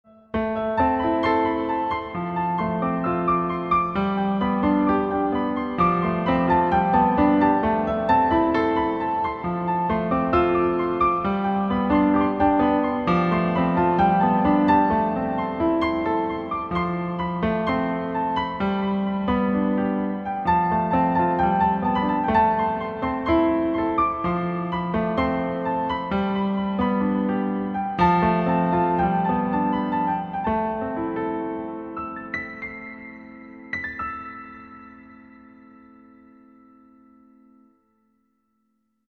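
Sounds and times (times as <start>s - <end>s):
piano playing: 0.1s - 38.0s.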